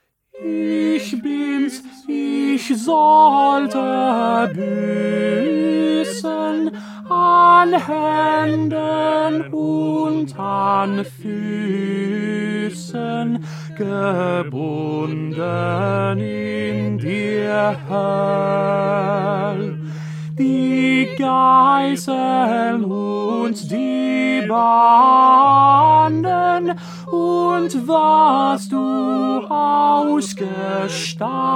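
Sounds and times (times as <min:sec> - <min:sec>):
tenor singing: 0:00.3 - 0:31.5.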